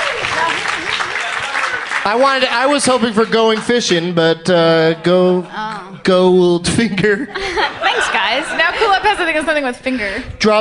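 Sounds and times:
studio audience applause during a comedy game show: 0.0 - 4.0
speech: 2.0 - 10.5
laughter: 6.8 - 9.4.

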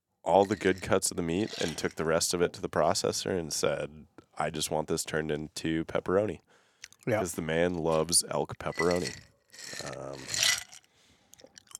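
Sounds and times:
speech: 0.2 - 10.5
ice crunching between teeth: 8.9 - 11.7.

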